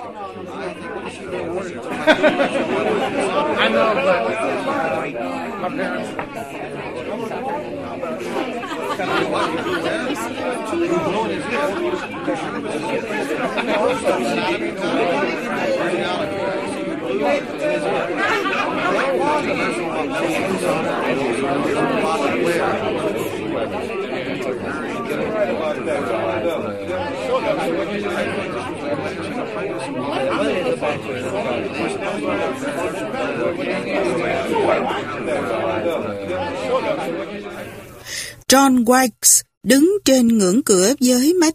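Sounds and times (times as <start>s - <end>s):
crowd chatter at a party: 0.0s - 41.5s
speech: 0.1s - 37.8s, 38.5s - 41.5s
laughter at a party: 1.8s - 3.2s, 8.3s - 10.2s, 13.4s - 14.2s, 18.2s - 19.2s.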